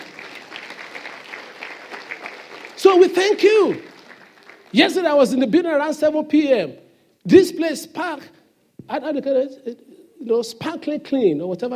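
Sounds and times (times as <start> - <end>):
audience applause: 0.0 - 5.1
speech: 2.9 - 3.9, 4.7 - 11.7.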